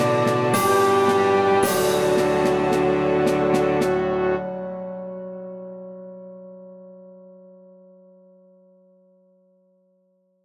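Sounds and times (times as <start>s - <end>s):
melodic music track: 0.0s - 7.5s.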